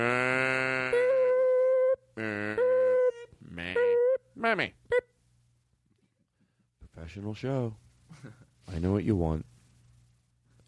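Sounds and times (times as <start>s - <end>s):
person imitating a cow mooing: 0.0s - 4.2s
speech: 4.4s - 4.8s, 7.2s - 9.5s.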